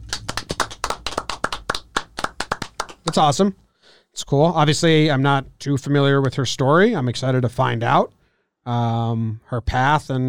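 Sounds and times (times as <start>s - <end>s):
hand clapping: 0.0s - 3.4s
speech: 3.1s - 3.6s, 4.2s - 10.2s.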